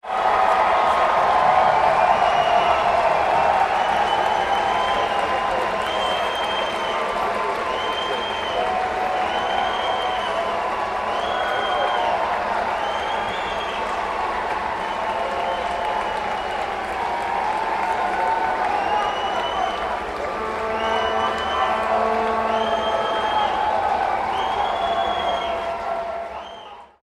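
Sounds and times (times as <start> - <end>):
applause: 0.0 - 27.0
whistling: 2.0 - 14.0, 14.8 - 16.8, 18.6 - 27.0.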